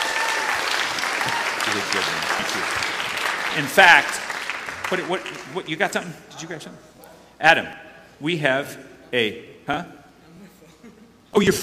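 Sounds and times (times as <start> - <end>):
crowd applauding: 0.0 - 6.0
speech: 1.7 - 2.9, 3.5 - 4.2, 4.9 - 10.0, 11.3 - 11.6.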